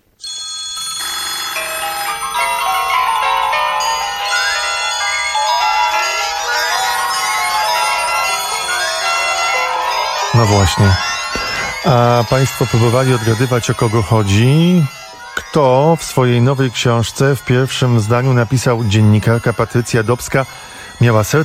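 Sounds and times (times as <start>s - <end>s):
telephone ringing: 0.1s - 21.4s
speech: 10.4s - 11.1s, 11.8s - 15.0s, 15.6s - 21.4s.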